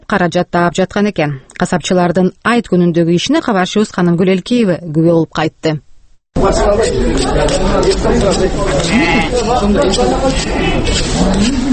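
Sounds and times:
speech: 0.1s - 11.7s
crowd chatter at livestock market: 6.4s - 11.7s
sheep bleating at Bishkek's old Talchok livestock market: 8.8s - 9.5s, 10.3s - 10.9s.

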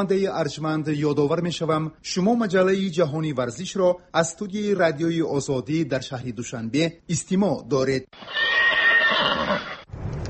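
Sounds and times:
speech: 0.0s - 10.1s
horse whinnying at a race: 8.2s - 9.9s.

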